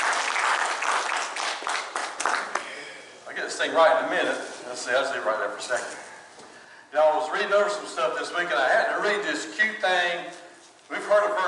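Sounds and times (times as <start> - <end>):
audience applauding: 0.0 - 2.8
speech: 3.5 - 6.1, 6.9 - 11.4.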